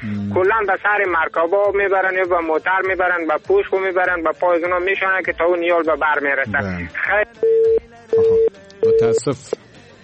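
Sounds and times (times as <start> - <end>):
speech: 0.0 - 9.7
busy tone beeps after a phone call was cut off: 7.4 - 9.3.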